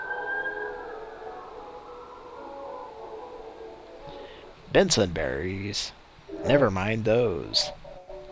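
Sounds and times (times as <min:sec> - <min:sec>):
emergency vehicle sirens wailing: 0:00.0 - 0:02.3
speech: 0:04.7 - 0:07.8.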